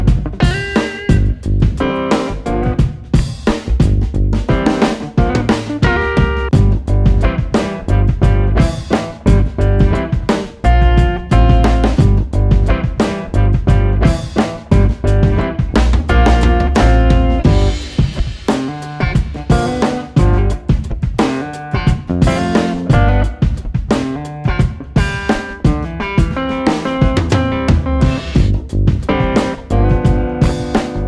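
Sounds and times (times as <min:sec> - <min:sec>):
laidback bass guitar groove: 0:00.0 - 0:31.0.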